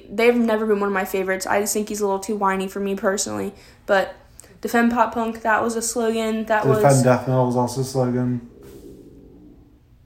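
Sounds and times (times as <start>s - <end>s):
speech: 0.1s - 8.5s
stomach growling: 8.3s - 10.0s.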